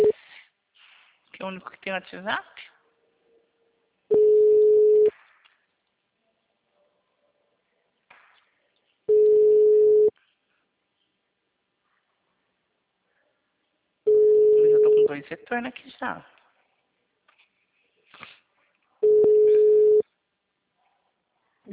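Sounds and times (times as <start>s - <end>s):
speech: 1.4s - 2.7s, 15.2s - 16.4s
telephone ringback tone of an unanswered call: 4.1s - 5.1s, 9.1s - 10.1s, 14.1s - 15.0s, 19.0s - 20.0s.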